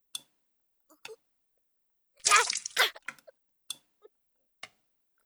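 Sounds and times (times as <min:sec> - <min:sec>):
person coughing up blood: 0:02.3 - 0:03.0.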